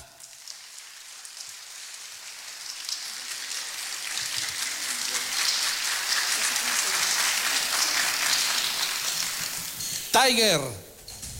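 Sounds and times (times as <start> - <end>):
audience applause: 0.6 - 9.8
speech: 10.2 - 10.8.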